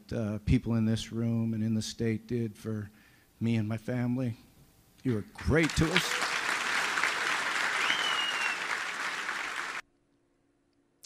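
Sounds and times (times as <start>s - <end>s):
speech: 0.1s - 6.2s
large crowd standing ovation applause: 5.1s - 9.8s.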